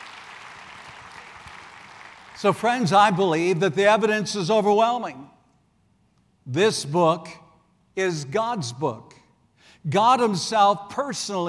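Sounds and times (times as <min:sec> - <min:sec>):
audience applause: 0:00.0 - 0:02.6
speech: 0:02.4 - 0:05.4, 0:06.5 - 0:07.4, 0:08.0 - 0:09.2, 0:09.8 - 0:11.4.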